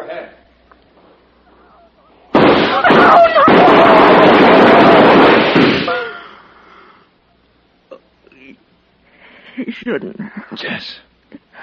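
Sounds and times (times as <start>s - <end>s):
gunshots fired in a standoff in a radio drama: 2.3s - 6.0s
speech: 9.8s - 11.1s.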